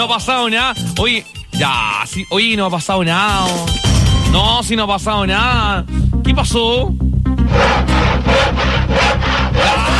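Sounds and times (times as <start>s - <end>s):
speech: 0.0s - 8.7s
hand saw cutting: 7.5s - 9.9s.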